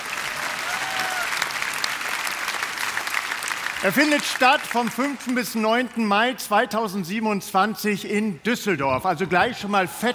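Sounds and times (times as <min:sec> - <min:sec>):
audience applause: 0:00.0 - 0:06.0
speech: 0:03.8 - 0:10.1.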